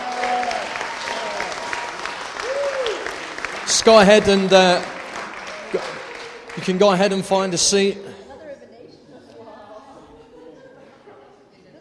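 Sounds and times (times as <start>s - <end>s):
audience clapping: 0.0s - 8.0s
laughter: 3.6s - 11.8s
speech: 3.8s - 4.9s, 5.7s - 6.0s, 6.6s - 8.1s.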